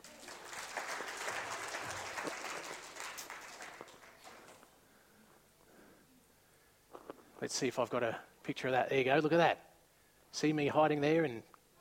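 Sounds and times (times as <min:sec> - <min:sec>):
crowd applause: 0:00.0 - 0:04.7
speech: 0:07.4 - 0:09.7, 0:10.3 - 0:11.5.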